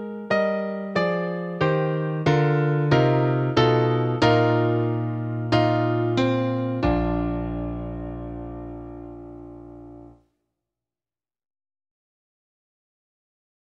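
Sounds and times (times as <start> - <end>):
piano playing a trumpet melody: 0.0 - 10.2.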